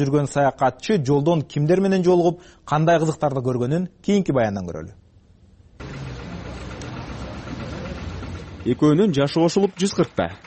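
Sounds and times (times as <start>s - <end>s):
speech: 0.0s - 5.0s, 8.6s - 10.4s
56-year-old tractor engine running: 5.8s - 10.4s.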